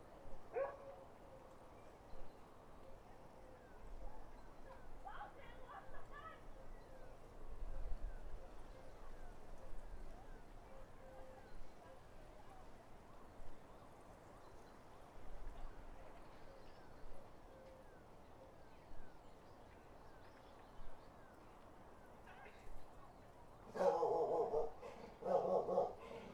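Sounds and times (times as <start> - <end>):
country dogs barking: 0.5 - 0.9, 23.7 - 26.3.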